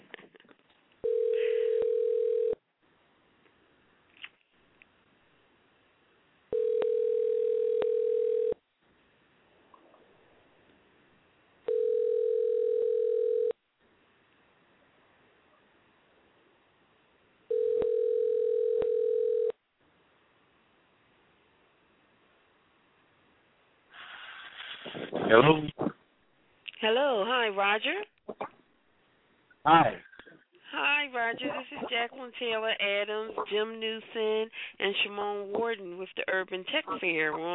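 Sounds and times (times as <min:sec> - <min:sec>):
hiss: 0:00.0 - 0:37.5
telephone ringback tone: 0:01.0 - 0:02.6, 0:06.5 - 0:08.6, 0:11.7 - 0:13.6, 0:17.5 - 0:19.6
speech: 0:25.3 - 0:25.8, 0:26.8 - 0:28.1, 0:29.6 - 0:30.0, 0:30.8 - 0:37.5.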